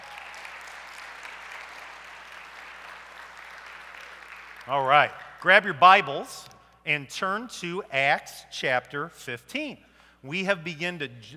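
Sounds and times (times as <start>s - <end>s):
audience applauding: 0.0s - 5.5s
speech: 4.7s - 11.3s.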